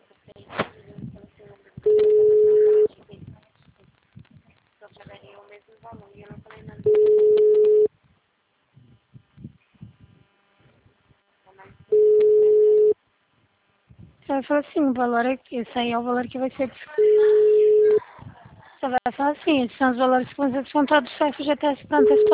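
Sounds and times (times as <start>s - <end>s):
ringing tone of an outgoing phone call: 1.9s - 2.9s, 6.9s - 7.9s, 11.9s - 13.0s, 17.0s - 18.0s, 22.0s - 22.3s
speech: 14.4s - 17.1s, 18.8s - 22.3s.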